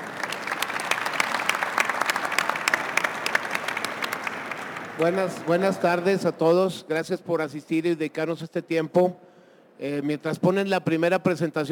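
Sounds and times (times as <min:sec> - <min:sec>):
audience applause: 0:00.0 - 0:06.1
speech: 0:05.0 - 0:09.2, 0:09.8 - 0:11.7.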